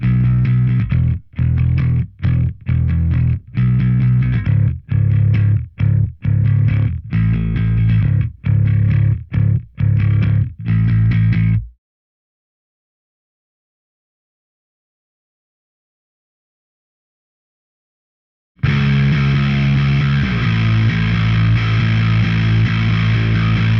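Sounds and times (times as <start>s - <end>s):
bass: 0.0s - 11.8s, 18.6s - 23.7s.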